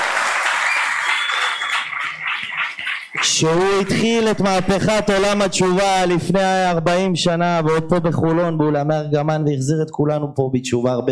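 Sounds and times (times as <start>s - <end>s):
audience applause: 0.0s - 4.2s
speech: 3.4s - 11.1s.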